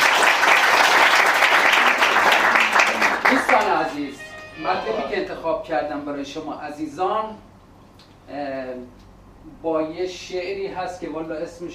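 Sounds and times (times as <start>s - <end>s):
audience applause at a gathering: 0.0s - 4.4s
speech: 3.9s - 7.5s, 8.3s - 11.7s.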